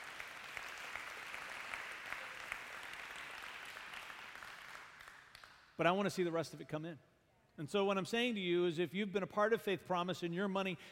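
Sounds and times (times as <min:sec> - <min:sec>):
audience applause: 0:00.0 - 0:05.3
speech: 0:05.8 - 0:10.9.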